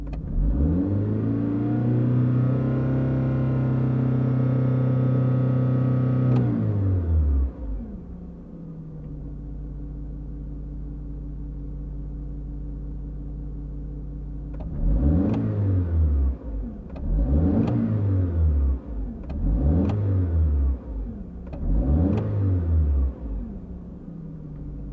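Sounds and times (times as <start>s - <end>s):
aircraft engine revving up heard from cockpit: 0.1s - 7.8s, 14.5s - 23.9s.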